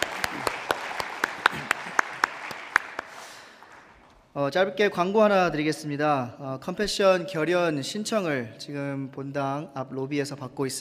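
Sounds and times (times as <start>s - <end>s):
audience applauding: 0.0s - 4.2s
speech: 4.4s - 10.7s.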